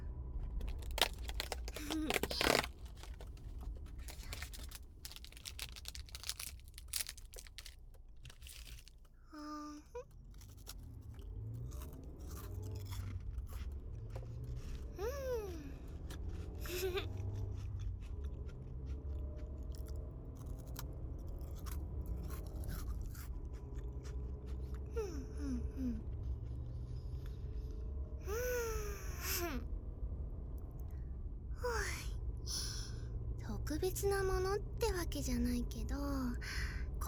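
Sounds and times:
low hum: 0.0s - 37.0s
cookie bitten and chewed: 0.4s - 27.2s
snack wrapper crinkling: 0.5s - 9.2s, 10.1s - 14.8s, 19.7s - 23.3s
speech: 33.8s - 36.7s.

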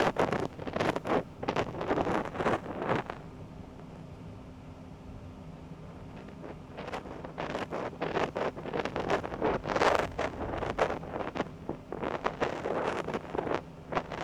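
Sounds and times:
ear cleaning with rubber spiral and spatula ear picks in right ear: 0.0s - 3.2s, 6.8s - 14.2s.

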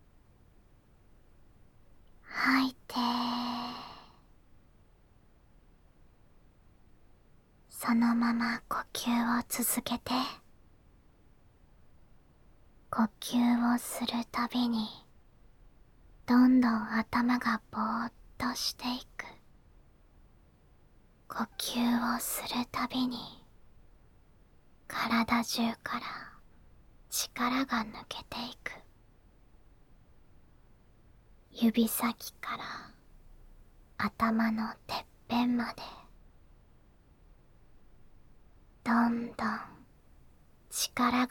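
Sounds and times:
ASMR whispering: 2.2s - 4.3s, 7.7s - 10.5s, 12.9s - 15.1s, 16.2s - 19.5s, 21.3s - 23.5s, 24.9s - 26.5s, 27.1s - 28.9s, 31.5s - 33.1s, 34.0s - 36.2s, 38.8s - 39.9s, 40.7s - 41.2s.

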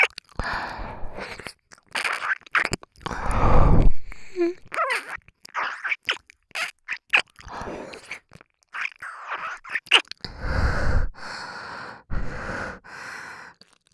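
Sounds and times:
ear licking: 0.0s - 10.4s.

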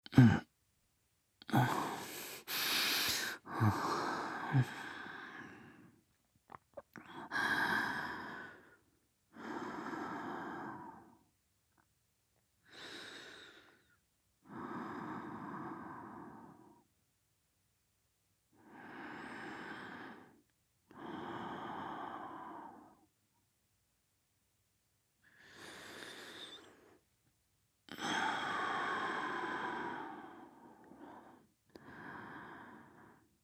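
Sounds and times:
person breathing in sleep: 1.5s - 6.0s, 7.0s - 11.2s, 12.6s - 16.8s, 18.6s - 23.1s, 25.2s - 27.0s, 27.9s - 33.3s.

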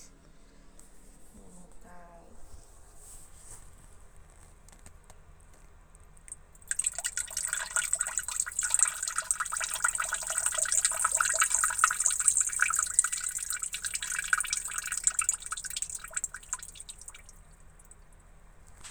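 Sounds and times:
person urinating in a toilet in the morning: 5.5s - 18.3s.

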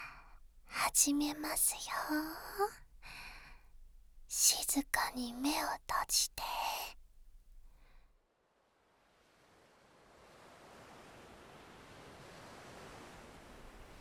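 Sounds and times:
speech: 1.0s - 2.8s, 4.3s - 6.8s
ocean waves: 9.1s - 13.9s.

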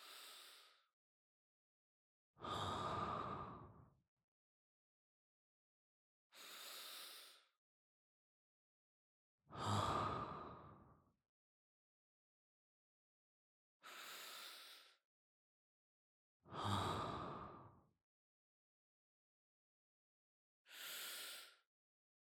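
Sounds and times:
person breathing in sleep: 0.0s - 0.8s, 2.4s - 3.8s, 6.4s - 7.5s, 9.6s - 10.9s, 13.8s - 15.0s, 16.5s - 17.7s, 20.7s - 21.6s.

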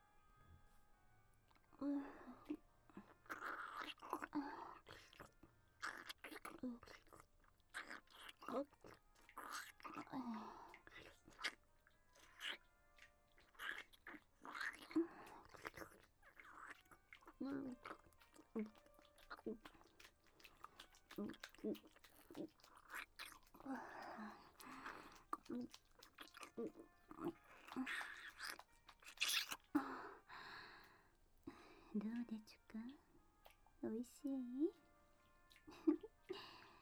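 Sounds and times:
mother chewing and crunching food while feeding a child mouth to mouth: 1.5s - 36.8s
wet mouth sounds: 1.6s - 31.0s.

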